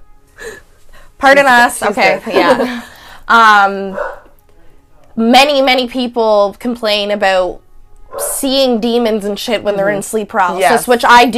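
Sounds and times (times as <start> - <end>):
speech: 1.2 - 4.1, 5.2 - 7.6, 8.4 - 11.3
dog barking: 3.9 - 4.4, 8.1 - 8.4.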